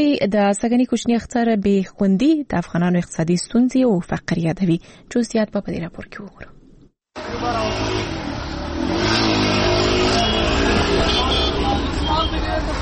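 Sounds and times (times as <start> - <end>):
speech: 0.0 - 6.6
busy city street traffic in Afghanistan on an Eid day: 7.2 - 12.8.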